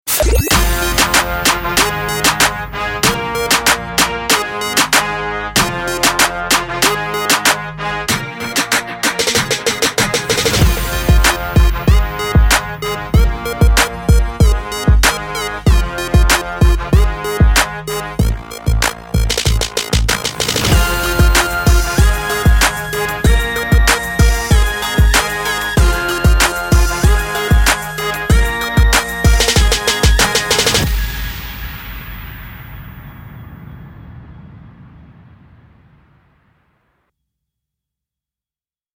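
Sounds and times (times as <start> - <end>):
hip hop backing music: 0.1 - 31.2.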